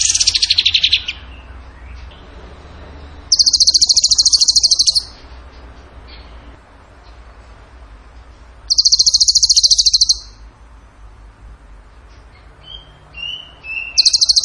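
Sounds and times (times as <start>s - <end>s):
bird trilling: 0.0s - 1.5s, 3.3s - 5.2s, 8.7s - 10.4s, 12.7s - 14.4s.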